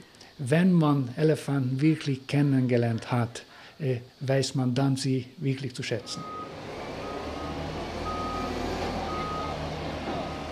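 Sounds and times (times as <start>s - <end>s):
speech: 0.4s - 6.5s
heavy mobile crane truck engine rumbling: 6.0s - 10.5s
mobile crane truck reversing beeps: 6.1s - 9.6s.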